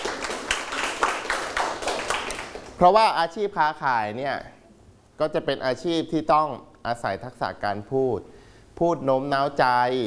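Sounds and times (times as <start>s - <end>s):
class clapping for a classmate: 0.0s - 3.0s
speech: 2.8s - 4.5s, 5.2s - 10.0s.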